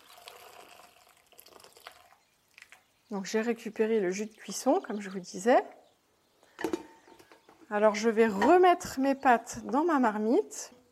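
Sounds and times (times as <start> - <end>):
water dripping: 0.0 - 5.1
speech: 3.1 - 5.8, 7.7 - 10.8.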